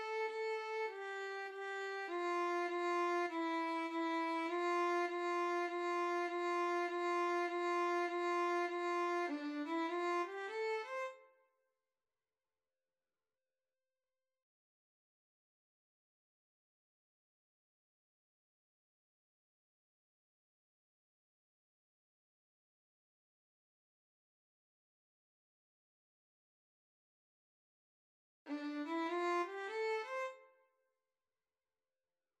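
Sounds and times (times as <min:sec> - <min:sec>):
violin and viola duet: 0:00.0 - 0:11.1, 0:28.5 - 0:30.4.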